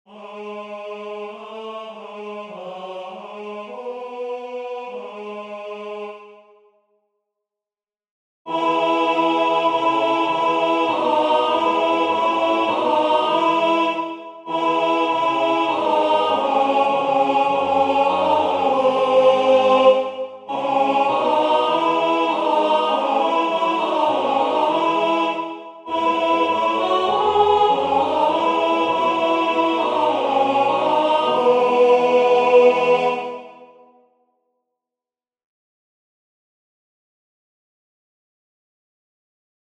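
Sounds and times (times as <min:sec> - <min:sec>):
alto voice singing a hymn: 0:00.1 - 0:06.2, 0:08.5 - 0:33.6.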